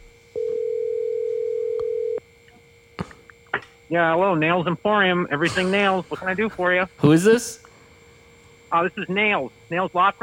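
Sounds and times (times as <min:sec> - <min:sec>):
telephone dial tone: 0:00.3 - 0:02.2
speech: 0:03.9 - 0:07.7, 0:08.7 - 0:10.2.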